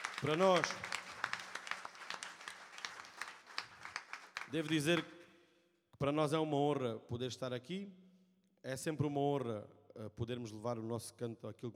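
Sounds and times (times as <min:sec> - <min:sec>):
audience applause: 0:00.0 - 0:05.0
speech: 0:00.2 - 0:00.9, 0:04.5 - 0:05.2, 0:06.0 - 0:08.0, 0:08.6 - 0:11.7.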